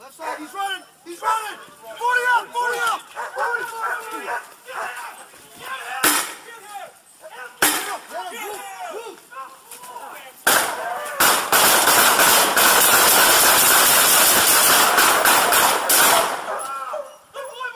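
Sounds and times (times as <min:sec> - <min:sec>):
urgent shouting voices: 0:00.0 - 0:11.7, 0:13.6 - 0:17.7
gunshots from a police shooting in Connecticut: 0:06.0 - 0:06.4, 0:07.6 - 0:08.0, 0:10.5 - 0:16.6.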